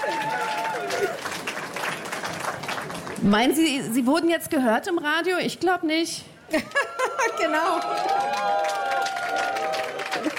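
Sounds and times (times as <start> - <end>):
audience applause: 0.0 - 3.2, 6.6 - 10.3
speech: 3.2 - 8.8.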